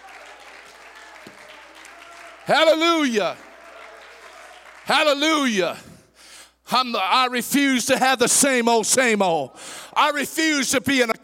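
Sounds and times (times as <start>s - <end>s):
people clapping: 0.0s - 5.7s
speech: 2.5s - 3.4s, 4.9s - 5.9s, 6.7s - 11.2s.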